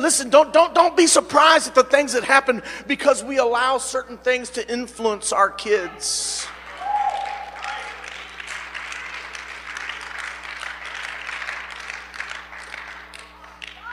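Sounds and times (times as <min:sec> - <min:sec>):
speech: 0:00.0 - 0:06.6
few people clapping: 0:06.4 - 0:13.9.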